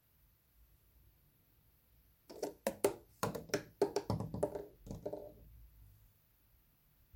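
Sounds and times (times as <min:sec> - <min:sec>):
fir cone tapping window: 0:02.3 - 0:05.4.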